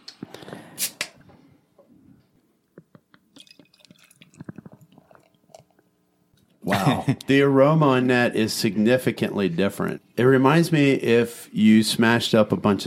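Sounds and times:
beer being poured into a glass: 3.3 - 5.9
soft fizzing crackles: 3.3 - 5.9
speech: 6.8 - 12.8.

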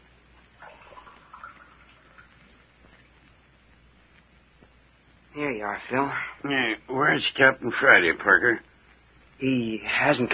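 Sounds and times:
water pouring into a glass: 0.6 - 2.5
speech: 5.4 - 8.7, 9.4 - 10.3.

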